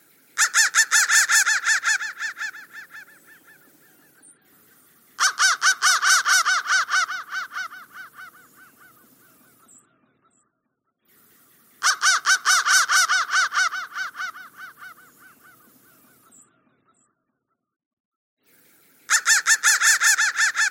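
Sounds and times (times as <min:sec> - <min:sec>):
crow cawing: 0:00.4 - 0:03.8, 0:05.2 - 0:09.6, 0:11.8 - 0:16.2, 0:19.1 - 0:20.7.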